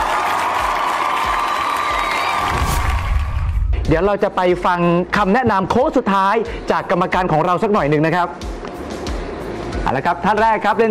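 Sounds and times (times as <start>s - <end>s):
audience applause and cheering: 0.0s - 3.9s
speech: 3.9s - 8.6s, 9.9s - 10.8s.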